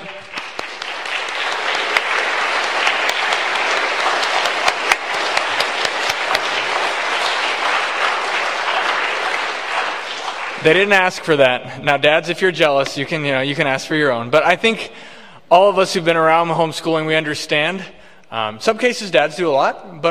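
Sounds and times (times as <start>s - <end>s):
large crowd applause: 0.0s - 11.4s
speech: 10.6s - 20.1s.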